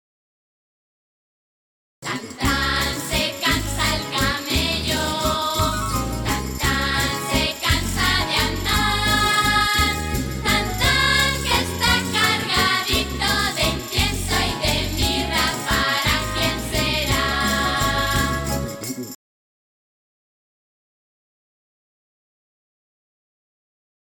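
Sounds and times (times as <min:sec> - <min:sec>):
song verse: 0:02.0 - 0:19.1.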